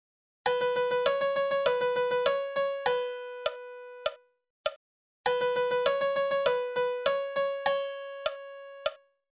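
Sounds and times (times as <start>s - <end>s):
music: 0.4s - 4.4s, 5.2s - 9.2s.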